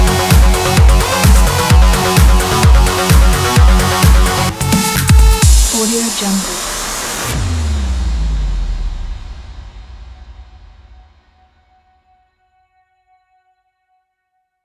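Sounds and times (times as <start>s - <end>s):
electro sport music: 0.0s - 10.1s.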